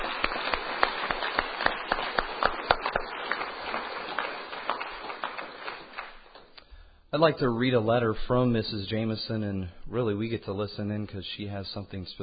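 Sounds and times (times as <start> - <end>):
audience applause: 0.0 - 6.6
speech: 7.2 - 12.2.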